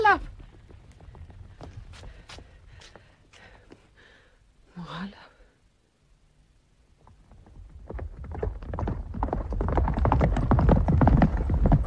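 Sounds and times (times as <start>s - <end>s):
several horses ridden away at night, hooves clip-clopping: 0.0s - 3.5s, 7.0s - 11.8s.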